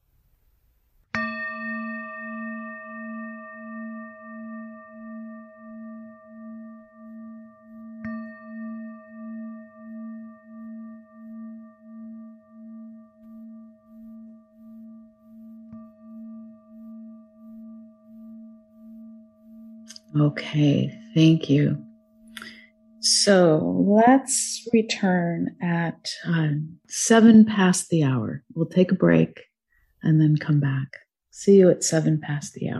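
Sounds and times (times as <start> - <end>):
meditation bell ringing: 1.1 - 23.5
speech: 20.1 - 21.9, 23.1 - 32.7.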